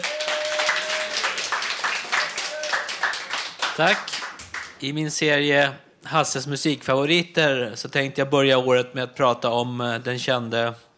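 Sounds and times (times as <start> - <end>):
applause: 0.0 - 4.8
speech: 3.8 - 4.2, 4.8 - 10.9.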